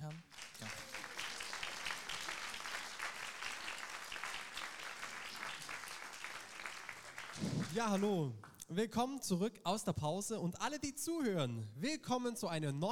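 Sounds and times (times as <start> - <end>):
audience clapping: 0.0 - 8.6
speech: 7.7 - 12.9.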